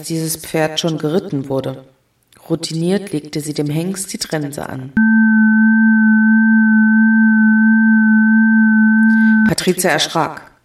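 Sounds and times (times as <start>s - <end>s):
speech: 0.0s - 5.7s, 9.6s - 10.5s
doorbell ringing: 5.0s - 9.6s.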